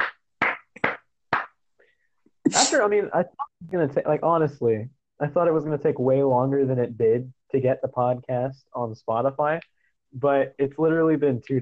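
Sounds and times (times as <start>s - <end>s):
hosts clapping hands: 0.0s - 1.6s
speech: 2.5s - 11.6s.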